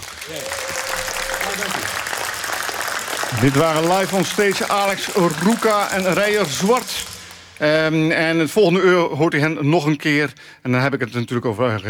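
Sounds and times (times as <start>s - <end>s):
audience applause: 0.0s - 7.6s
speech: 0.3s - 0.7s, 3.3s - 11.8s.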